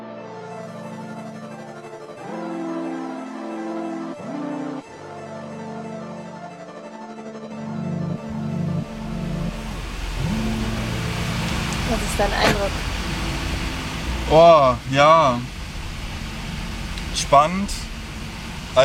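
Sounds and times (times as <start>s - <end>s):
car engine driving toward a harbour: 7.9s - 18.8s
speech: 12.2s - 12.9s, 14.3s - 15.5s, 17.3s - 17.9s.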